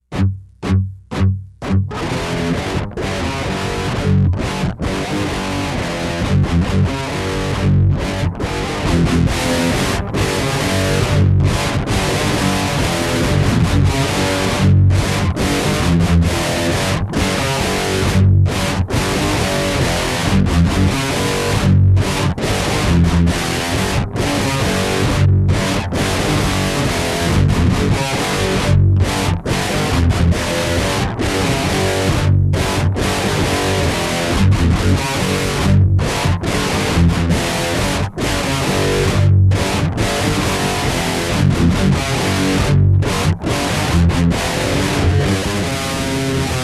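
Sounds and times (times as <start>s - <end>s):
riff tapes: 0.0s - 46.6s.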